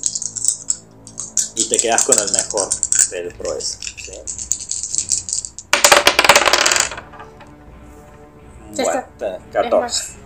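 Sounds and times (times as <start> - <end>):
dice being rolled: 0.0 - 7.6
speech: 1.6 - 4.4, 8.7 - 10.2.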